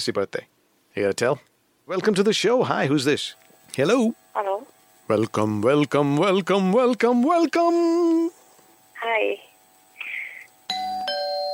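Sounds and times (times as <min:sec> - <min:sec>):
speech: 0:00.0 - 0:08.4, 0:09.0 - 0:09.4
two-tone doorbell chime: 0:10.7 - 0:11.5.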